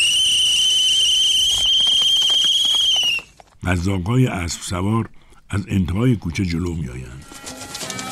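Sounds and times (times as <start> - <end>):
whistle being blown: 0.0 - 3.3
speech: 3.7 - 7.3.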